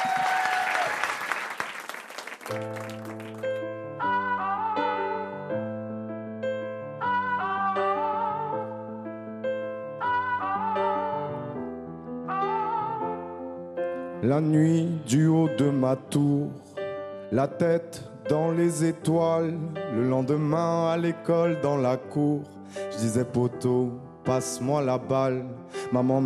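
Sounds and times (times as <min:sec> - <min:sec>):
studio audience applause for a singer on a televised singing competition: 0:00.0 - 0:03.6
speech: 0:02.5 - 0:03.2, 0:14.2 - 0:16.6, 0:17.3 - 0:26.2
melodic keyboard music with layered chords: 0:02.5 - 0:26.2.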